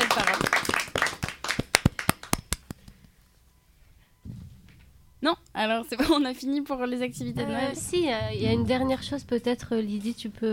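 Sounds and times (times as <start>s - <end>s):
audience applause: 0.0s - 2.7s
speech: 5.2s - 10.5s.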